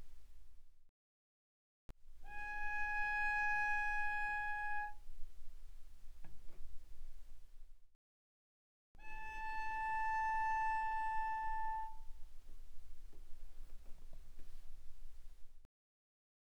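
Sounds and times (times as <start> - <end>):
cello bowed arco very softly on the A string: 2.1 - 7.7, 9.0 - 15.6.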